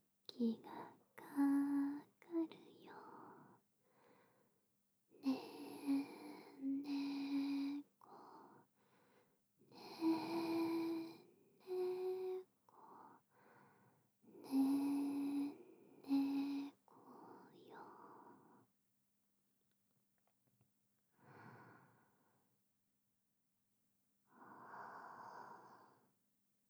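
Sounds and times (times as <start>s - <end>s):
lullaby: 0.3s - 3.6s, 5.2s - 8.6s, 9.7s - 13.2s, 14.4s - 18.6s.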